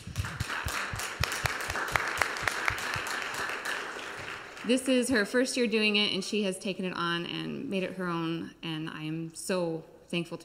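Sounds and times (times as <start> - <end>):
audience applause: 0.0 - 5.0
speech: 4.7 - 10.4.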